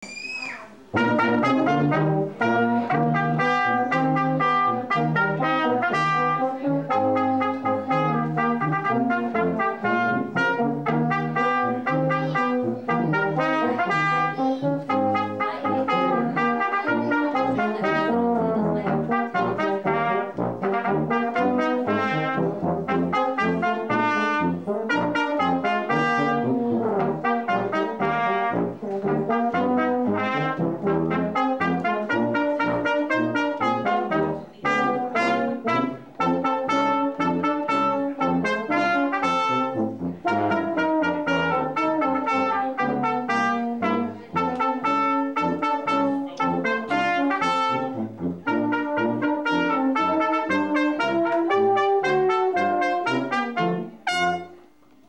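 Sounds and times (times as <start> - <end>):
brass playing: 0.9 - 55.0.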